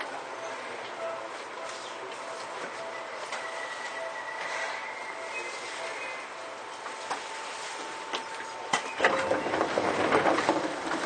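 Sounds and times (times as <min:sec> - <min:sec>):
Seibu old 2000 series train running between Seibu-Shinjuku and Hon-Kawagoe: 0:00.0 - 0:11.0
sharp rattling and clatter: 0:09.0 - 0:11.0.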